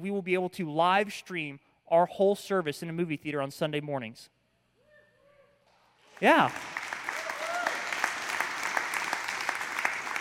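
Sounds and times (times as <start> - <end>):
speech: 0.0 - 4.4, 6.2 - 6.8
audience clapping: 6.1 - 10.2.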